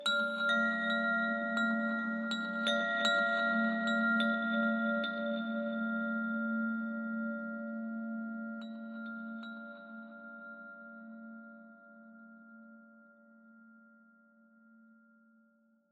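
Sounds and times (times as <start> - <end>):
high abstract ambient chimes: 0.0 - 12.4.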